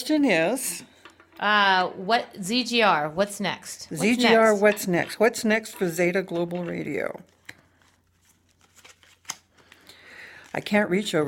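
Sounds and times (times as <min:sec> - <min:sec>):
speech: 0:00.0 - 0:07.3, 0:10.5 - 0:11.2
deck of cards being shuffled in a recording studio: 0:06.4 - 0:11.2.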